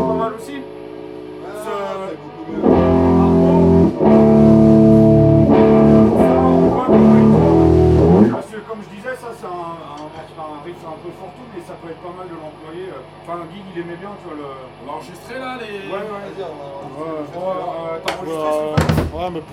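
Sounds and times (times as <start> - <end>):
bouzouki playing: 0.0 - 0.4, 2.5 - 8.4.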